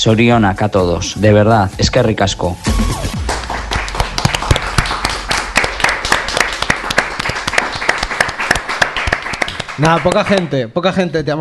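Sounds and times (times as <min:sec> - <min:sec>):
speech: 0:00.0 - 0:03.2, 0:09.8 - 0:11.3
applause: 0:03.1 - 0:10.6.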